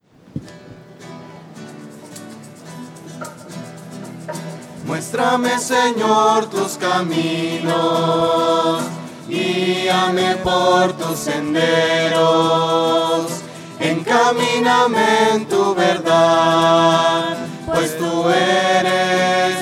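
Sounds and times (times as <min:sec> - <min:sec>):
voices: 0:04.8 - 0:19.5.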